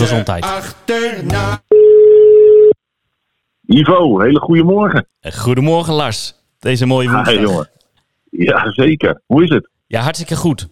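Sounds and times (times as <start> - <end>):
speech: 0.0 - 1.7, 3.7 - 10.6
telephone ringing tone after a call is placed: 1.7 - 2.8.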